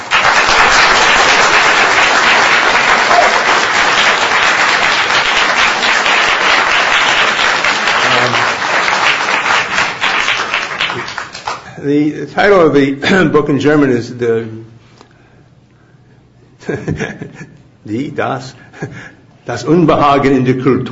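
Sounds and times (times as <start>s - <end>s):
audience applause welcoming a speaker to a lecture on Zionism: 0.0s - 11.7s
speech: 11.8s - 14.7s, 16.7s - 20.9s.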